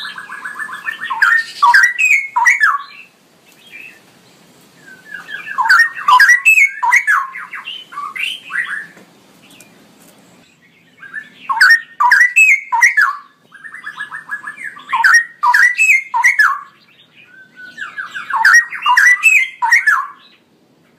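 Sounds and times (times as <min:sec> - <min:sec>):
straw-headed bulbul gurgling whistles: 0:00.0 - 0:03.0, 0:04.9 - 0:08.9, 0:11.1 - 0:16.7, 0:17.4 - 0:20.2.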